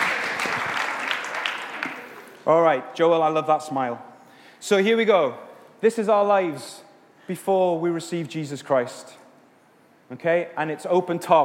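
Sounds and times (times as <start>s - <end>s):
group clapping: 0.0s - 2.4s
speech: 2.4s - 9.2s, 10.1s - 11.4s.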